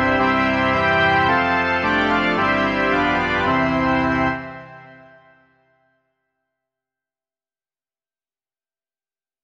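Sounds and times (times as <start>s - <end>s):
organ: 0.0s - 5.6s.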